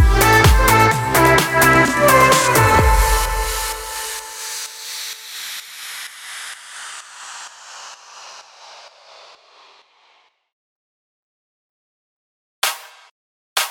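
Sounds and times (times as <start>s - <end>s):
electro music in E minor: 0.0s - 9.8s.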